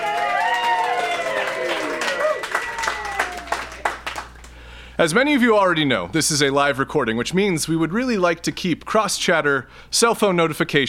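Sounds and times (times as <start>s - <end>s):
whoops and shouting voices: 0.0s - 3.9s
live audience clapping and cheering: 0.0s - 4.6s
speech: 5.0s - 10.8s.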